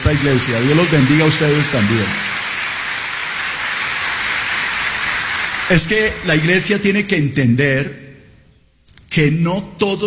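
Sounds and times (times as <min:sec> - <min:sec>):
audience applause: 0:00.0 - 0:06.7
speech: 0:00.1 - 0:02.4, 0:05.7 - 0:08.1, 0:09.2 - 0:10.0.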